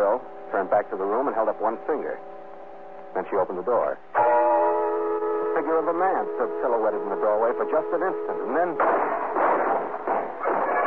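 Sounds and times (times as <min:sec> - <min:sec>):
speech: 0:00.2 - 0:02.4, 0:03.1 - 0:04.3, 0:05.6 - 0:09.4
many guns firing at once: 0:08.8 - 0:10.8.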